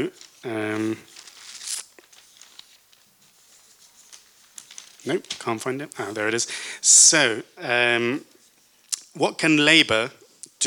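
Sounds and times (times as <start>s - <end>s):
speech: 0.0s - 1.1s, 5.0s - 8.3s, 9.2s - 10.6s
sheets of paper rustling at a panel discussion: 0.0s - 6.4s.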